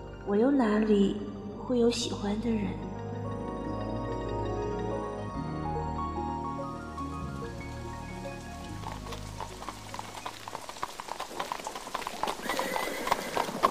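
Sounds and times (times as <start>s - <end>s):
steady music: 0.0s - 10.1s
speech: 0.2s - 2.9s
sudden rain falling: 6.1s - 13.6s.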